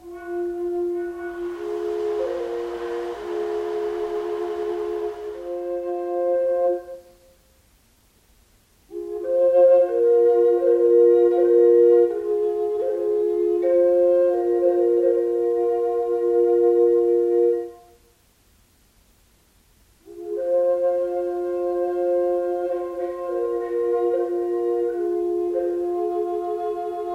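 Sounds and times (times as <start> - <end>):
Native American flute: 0.0 - 7.2, 8.9 - 17.8, 20.1 - 27.1
ocean drum for sound healing: 0.4 - 6.2.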